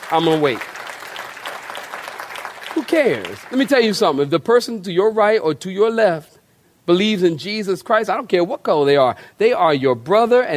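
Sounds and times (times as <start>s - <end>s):
audience clapping: 0.0s - 4.2s
speech: 0.1s - 0.7s, 2.9s - 6.3s, 6.9s - 10.5s.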